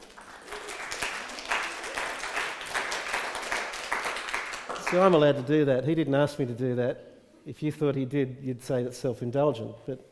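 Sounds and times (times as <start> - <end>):
audience applause: 0.0 - 5.2
speech: 4.9 - 10.0.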